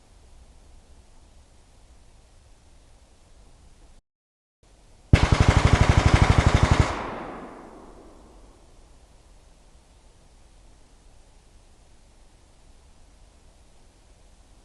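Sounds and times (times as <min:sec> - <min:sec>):
AK5 rifle gunshot in a valley field forest behind buildings: 0:05.2 - 0:08.7.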